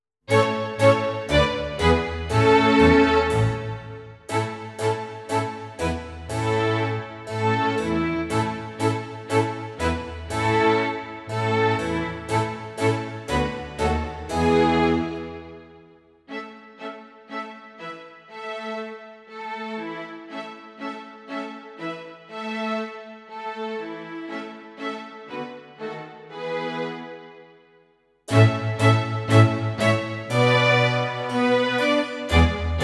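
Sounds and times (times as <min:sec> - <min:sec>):
backing track: 0:00.3 - 0:15.8, 0:28.3 - 0:32.8.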